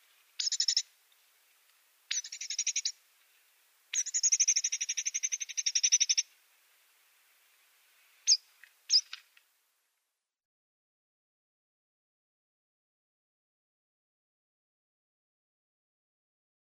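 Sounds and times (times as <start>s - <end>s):
Arabian babbler calls: 0.4s - 0.9s, 2.1s - 3.0s, 3.9s - 6.3s, 8.3s - 9.2s.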